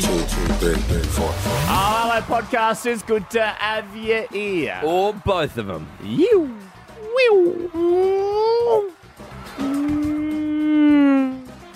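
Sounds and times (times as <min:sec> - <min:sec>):
speech: 0:00.3 - 0:08.9
voice imitating a car going past: 0:09.6 - 0:11.5.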